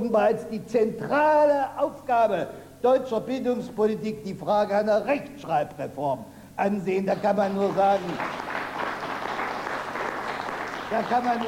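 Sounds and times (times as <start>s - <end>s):
speech: 0.0s - 8.5s, 10.9s - 11.4s
enthusiastic applause from mostly older listeners: 7.1s - 11.4s.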